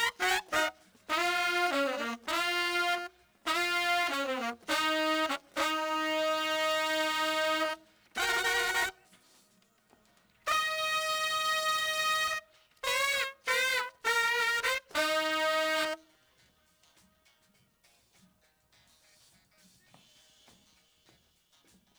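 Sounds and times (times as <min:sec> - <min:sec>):
horns: 0:00.0 - 0:09.5, 0:10.4 - 0:16.4.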